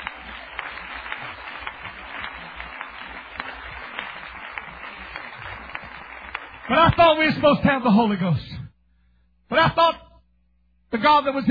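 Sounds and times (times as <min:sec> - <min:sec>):
audience clapping: 0:00.0 - 0:08.2
speech: 0:06.7 - 0:08.5, 0:09.6 - 0:10.0, 0:10.9 - 0:11.4.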